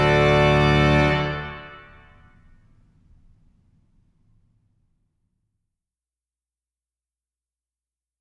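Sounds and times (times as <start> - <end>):
slow fugue: 0.0 - 2.4.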